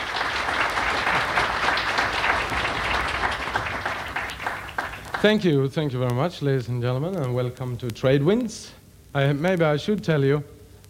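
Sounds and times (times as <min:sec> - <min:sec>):
audience applause: 0:00.0 - 0:05.4
speech: 0:05.2 - 0:10.6.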